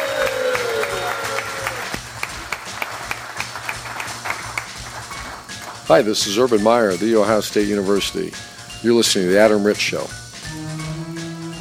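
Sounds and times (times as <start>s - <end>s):
audience applause for student athletes: 0.0s - 5.8s
speech: 5.9s - 10.2s.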